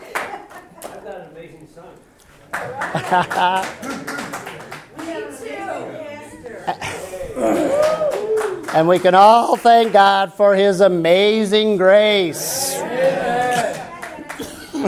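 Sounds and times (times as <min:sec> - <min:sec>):
applause: 0:00.0 - 0:01.0, 0:02.4 - 0:05.3, 0:07.6 - 0:10.2, 0:13.4 - 0:14.8
laughter: 0:00.0 - 0:01.4, 0:02.5 - 0:08.7, 0:12.4 - 0:14.8
speech: 0:01.4 - 0:04.0, 0:08.8 - 0:13.1.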